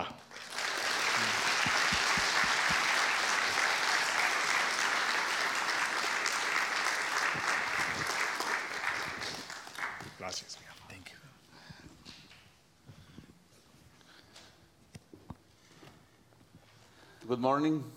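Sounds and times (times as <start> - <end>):
church congregation applause welcoming a preacher: 0.0 - 10.9
speech: 17.3 - 17.9.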